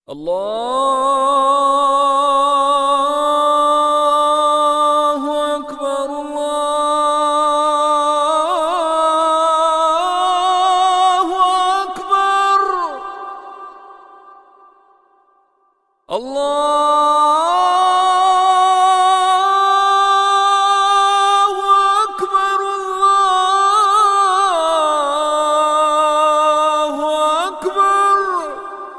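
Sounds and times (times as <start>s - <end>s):
azaan call to prayer: 0.1s - 15.2s, 16.1s - 28.9s.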